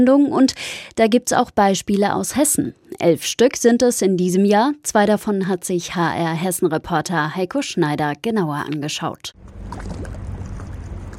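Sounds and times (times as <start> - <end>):
speech: 0.0 - 10.2
river water gently lapping at the bank: 9.4 - 11.1
soft continuous low rumble: 9.4 - 11.1.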